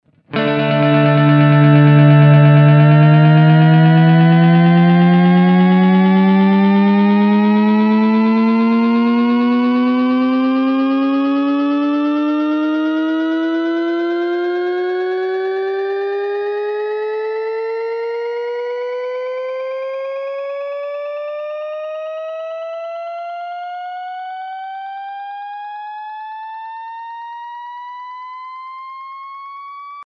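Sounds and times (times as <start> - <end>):
Eventide MicroPitch riser effect: 0.3 - 17.6.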